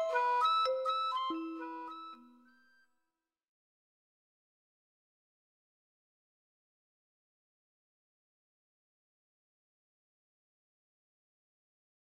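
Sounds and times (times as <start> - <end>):
shakuhachi flute playing dance music: 0.0 - 2.8.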